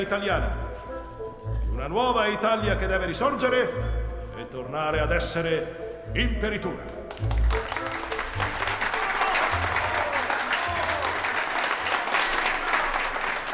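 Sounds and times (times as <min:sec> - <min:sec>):
speech: 0:00.0 - 0:00.6, 0:01.8 - 0:08.0
prolonged applause after a speech: 0:06.9 - 0:13.5.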